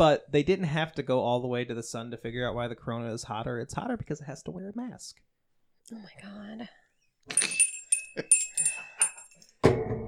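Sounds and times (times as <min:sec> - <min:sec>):
speech: 0:00.0 - 0:07.6, 0:08.2 - 0:09.0
hand bell ringing: 0:07.3 - 0:09.6.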